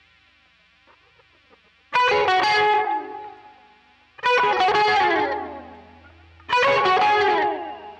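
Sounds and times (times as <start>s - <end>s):
guitar solo through a Quilter amplifier: 1.9s - 3.4s, 4.2s - 7.9s.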